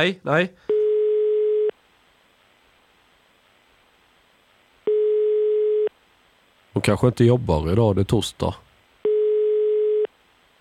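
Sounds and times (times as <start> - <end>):
speech: 0.0 - 0.7, 6.8 - 8.6
quiet hiss: 0.0 - 10.5
telephone ringback tones on a call ringing out: 0.7 - 1.7, 4.9 - 5.9, 9.0 - 10.1.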